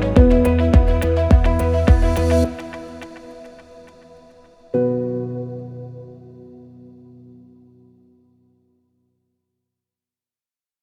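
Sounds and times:
ambient inspiration music: 0.0 - 7.3.

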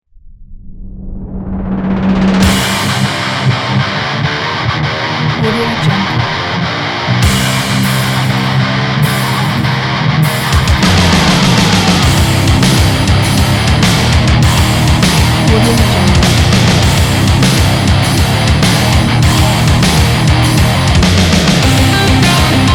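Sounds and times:
metal music: 1.2 - 22.7.

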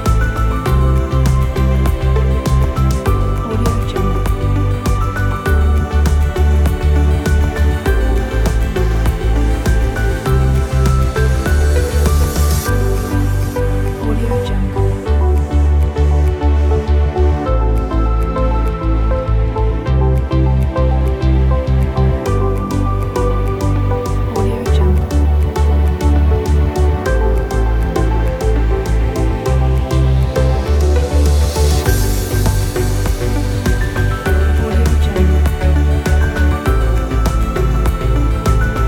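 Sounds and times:
motivational ambient corporate music: 0.0 - 38.8.

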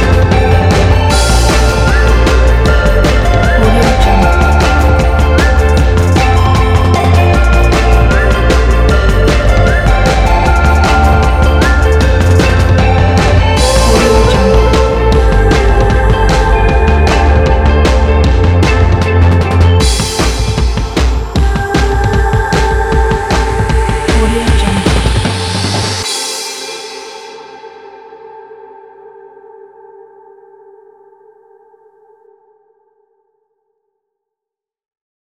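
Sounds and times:
indie pop rock music: 0.0 - 26.3.

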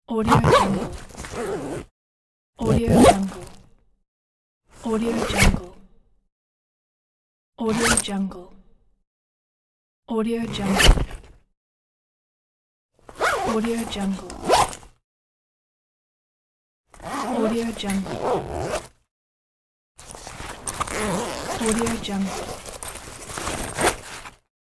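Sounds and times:
bag zipper: 0.2 - 1.9, 2.6 - 3.6, 5.1 - 5.7, 7.7 - 8.0, 10.6 - 11.1, 13.1 - 14.9, 17.0 - 19.0, 20.0 - 24.4.

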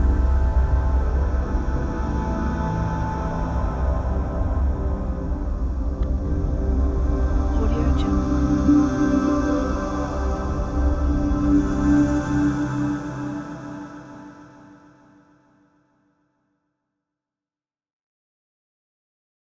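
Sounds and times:
mysterious space ambience: 0.0 - 14.6.

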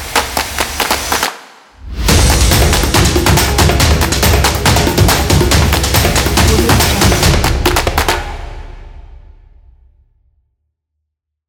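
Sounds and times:
epic sport drums logo: 1.8 - 9.6.

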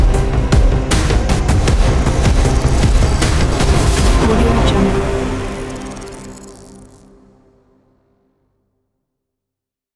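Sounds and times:
hybrid trailer logo ident: 0.2 - 7.4.

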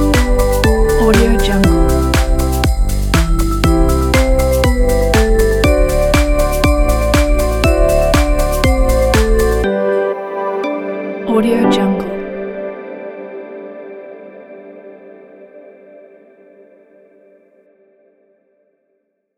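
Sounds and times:
Christmas dance music: 0.0 - 13.0.

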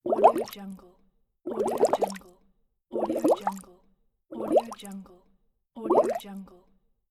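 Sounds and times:
short water bubbles: 0.0 - 0.6, 1.5 - 2.2, 3.0 - 3.6, 4.3 - 4.9, 5.9 - 6.2.

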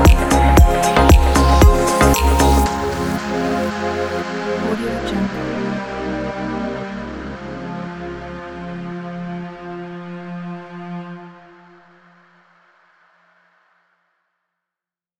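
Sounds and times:
tropical game music: 0.0 - 5.7.

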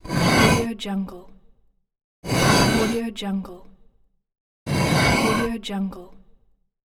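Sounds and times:
stone sliding: 0.0 - 0.7, 2.3 - 3.0, 4.7 - 5.6.

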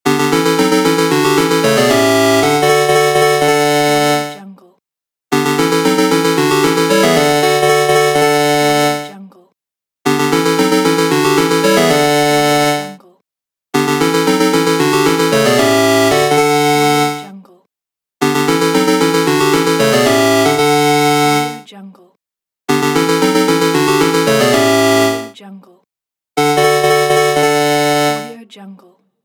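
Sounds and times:
8bit level up jingle: 0.1 - 4.4, 5.3 - 9.1, 10.1 - 13.0, 13.8 - 17.3, 18.2 - 21.6, 22.7 - 25.4, 26.4 - 28.4.

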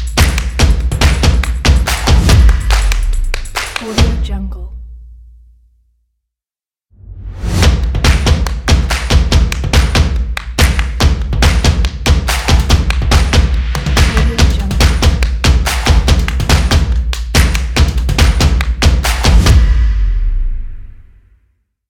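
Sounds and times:
energetic drum rhythm: 0.0 - 4.3, 7.6 - 19.8.

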